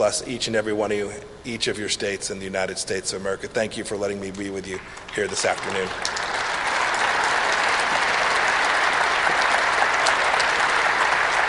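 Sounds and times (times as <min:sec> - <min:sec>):
speech: 0:00.0 - 0:06.2
warm applause: 0:04.7 - 0:11.4.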